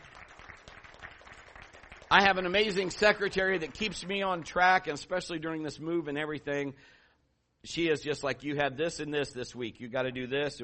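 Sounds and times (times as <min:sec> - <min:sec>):
audience applause: 0:00.0 - 0:03.9
speech: 0:02.1 - 0:07.0, 0:07.6 - 0:10.6.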